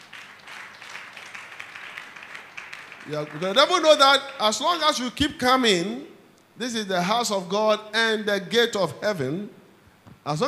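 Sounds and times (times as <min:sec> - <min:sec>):
crowd clapping: 0:00.0 - 0:05.0
speech: 0:03.1 - 0:09.6, 0:10.2 - 0:10.4.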